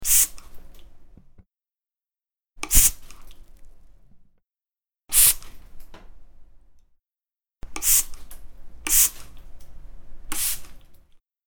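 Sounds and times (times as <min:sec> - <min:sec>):
spray: 0:00.0 - 0:00.4, 0:02.6 - 0:03.2, 0:05.1 - 0:05.5, 0:07.8 - 0:08.2, 0:08.9 - 0:09.3, 0:10.3 - 0:10.8.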